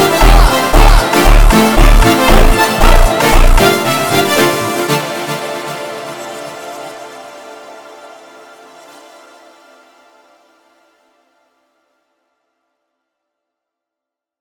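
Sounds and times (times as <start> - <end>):
slowed phonk music: 0.0 - 6.3.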